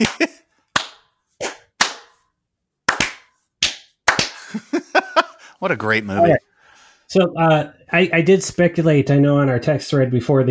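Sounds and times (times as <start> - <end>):
laughter: 0.0 - 0.4, 4.4 - 6.4
slow clap: 0.0 - 2.2, 2.9 - 4.7
speech: 5.6 - 6.5, 7.1 - 10.5.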